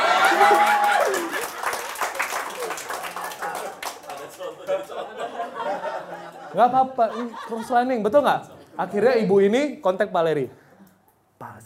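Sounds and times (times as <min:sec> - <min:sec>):
audience applause: 0:00.0 - 0:05.1
laughter: 0:00.0 - 0:09.2
speech: 0:06.6 - 0:10.6.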